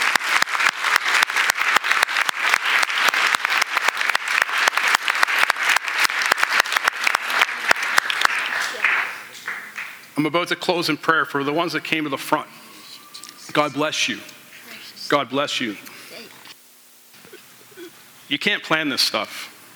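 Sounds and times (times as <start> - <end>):
crowd applauding: 0.0 - 10.1
speech: 10.2 - 12.6, 13.6 - 14.3, 15.1 - 15.9, 18.3 - 19.5.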